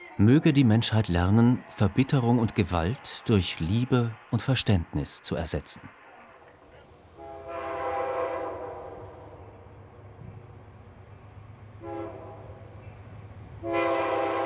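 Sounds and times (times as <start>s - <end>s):
train rumbling along: 0.0s - 14.4s
speech: 0.2s - 6.0s
train horn blasts: 7.2s - 9.6s, 11.8s - 12.6s, 13.6s - 14.4s.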